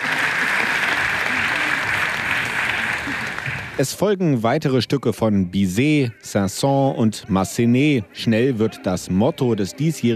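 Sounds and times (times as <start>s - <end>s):
open-air concert audience applause: 0.0s - 4.0s
speech: 3.8s - 10.1s.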